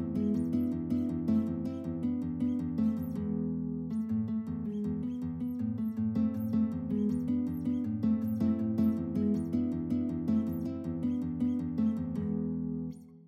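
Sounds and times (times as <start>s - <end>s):
guitar playing a waltz: 0.0s - 13.2s.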